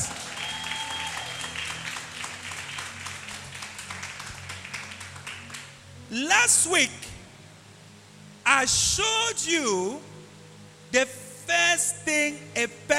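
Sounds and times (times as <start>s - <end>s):
audience clapping applause: 0.0s - 5.9s
speech: 6.1s - 7.1s, 8.6s - 10.1s, 10.9s - 12.9s.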